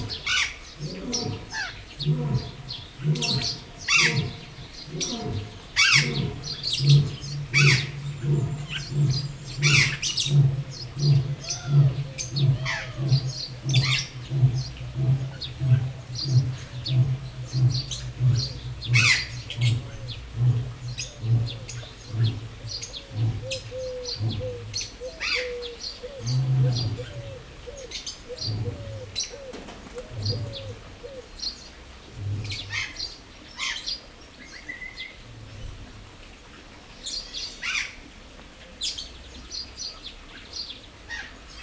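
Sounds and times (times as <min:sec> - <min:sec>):
lion roaring at a zoo: 0:00.0 - 0:31.3
birds chirping at a zoo: 0:00.0 - 0:34.0.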